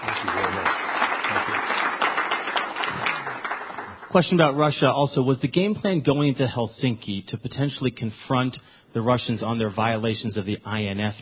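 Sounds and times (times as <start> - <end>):
audience applause for the director of the intelligence community: 0.0 - 4.6
speech: 4.1 - 11.2.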